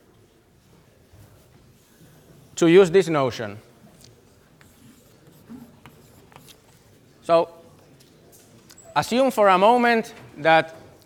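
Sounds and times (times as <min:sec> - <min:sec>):
scratchy strokes writing on a board during a lecture: 0:01.2 - 0:02.7, 0:03.9 - 0:07.1
speech: 0:02.6 - 0:03.7, 0:07.3 - 0:07.6, 0:09.0 - 0:10.8.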